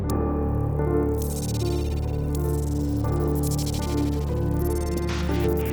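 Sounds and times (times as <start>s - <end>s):
electronic music generated by audience input through sensors into a MIDI machine: 0.1s - 5.7s.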